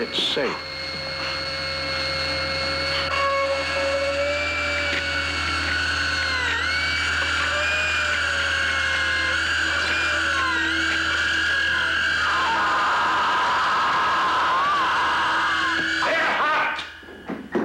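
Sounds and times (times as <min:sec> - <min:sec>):
dental drill drilling into a tooth: 0:00.0 - 0:17.5.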